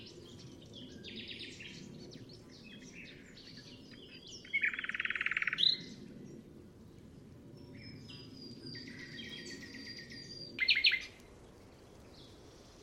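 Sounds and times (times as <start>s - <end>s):
nightingale singing: 0.0s - 6.0s, 7.6s - 11.2s.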